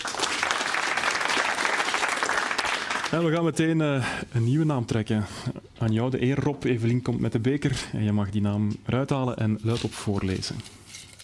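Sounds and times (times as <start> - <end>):
thunderous audience applause: 0.0 - 3.2
speech: 3.1 - 10.8.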